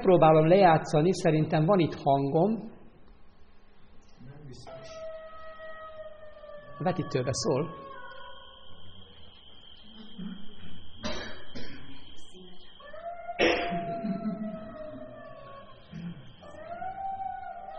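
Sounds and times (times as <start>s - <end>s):
speech: 0.0s - 2.7s, 6.8s - 7.8s
jackals howling: 4.6s - 10.9s, 12.0s - 17.7s.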